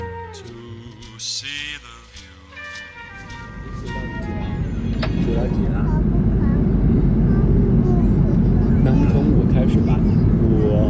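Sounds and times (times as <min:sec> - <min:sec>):
speech: 0:01.2 - 0:02.0, 0:05.3 - 0:06.5
airplane engine drone inside cabin on a flight from Beijing to Sanya: 0:03.0 - 0:10.8.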